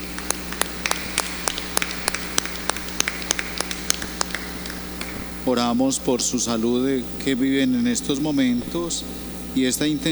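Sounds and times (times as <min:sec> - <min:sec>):
audience applause: 0:00.0 - 0:07.1
speech: 0:05.5 - 0:10.1.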